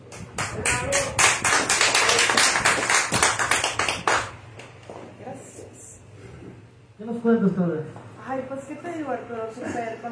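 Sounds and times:
audience applause: 0.0 - 4.4
speech: 7.1 - 10.1.

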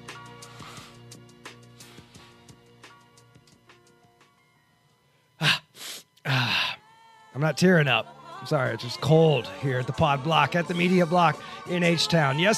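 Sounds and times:
person blowing nose: 0.4 - 2.5, 5.4 - 6.8
speech: 7.4 - 12.5.

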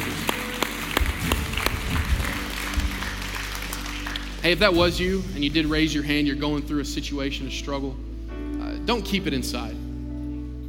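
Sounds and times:
people clapping hands: 0.0 - 4.8
speech: 4.4 - 8.1, 8.8 - 9.8.

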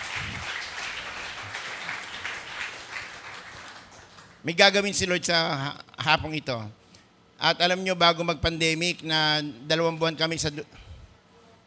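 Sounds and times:
audience applause: 0.0 - 4.4
speech: 4.4 - 6.8, 7.4 - 10.8.

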